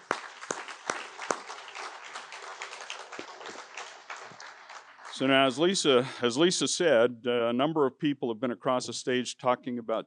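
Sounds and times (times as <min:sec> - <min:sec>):
audience applause: 0:00.0 - 0:06.2
speech: 0:05.2 - 0:10.0.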